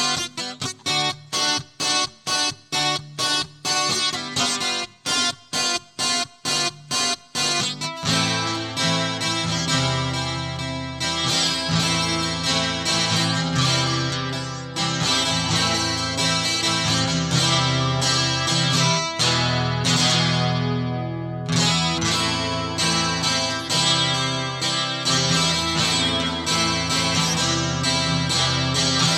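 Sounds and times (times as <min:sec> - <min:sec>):
heavy guitar loop: 0:00.0 - 0:29.1.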